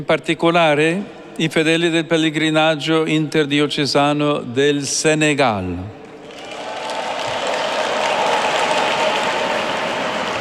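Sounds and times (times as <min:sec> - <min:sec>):
speech: 0:00.0 - 0:06.0
large crowd of pilgrims applauding: 0:06.2 - 0:10.4.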